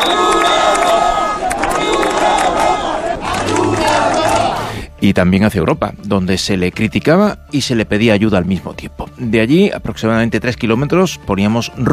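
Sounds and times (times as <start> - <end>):
protest crowd chanting and shouting slogans: 0.0 - 4.8
speech: 5.0 - 11.9.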